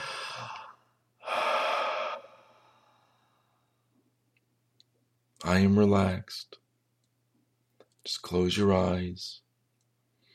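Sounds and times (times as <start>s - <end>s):
deep breathing during a guided relaxation exercise: 0.0s - 3.9s
speech: 5.5s - 6.6s, 8.0s - 9.4s.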